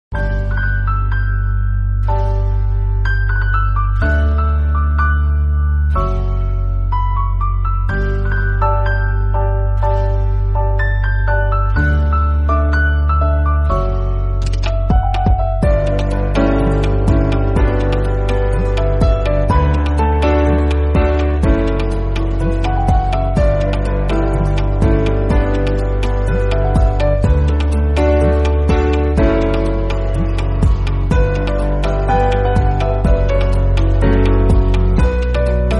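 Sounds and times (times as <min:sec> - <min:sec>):
instrumental music: 0:00.1 - 0:35.7.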